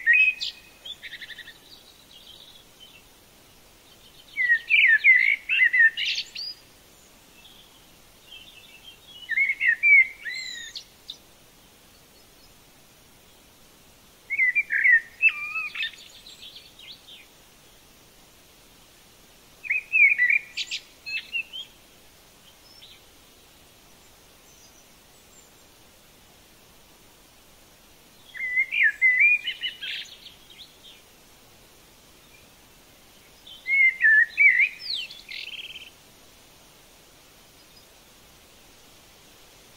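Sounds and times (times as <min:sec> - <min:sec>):
Polish birds singing: 0:00.0 - 0:03.1, 0:03.8 - 0:11.2, 0:14.3 - 0:17.4, 0:19.6 - 0:21.8, 0:28.2 - 0:31.0, 0:32.2 - 0:36.0.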